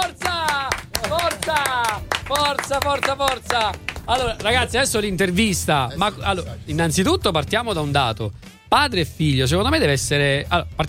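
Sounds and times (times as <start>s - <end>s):
audience applause: 0.0s - 4.6s
speech: 2.3s - 10.8s.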